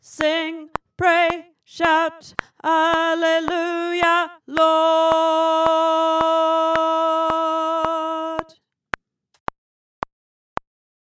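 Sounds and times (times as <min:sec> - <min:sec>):
tenor singing: 0:00.0 - 0:08.6.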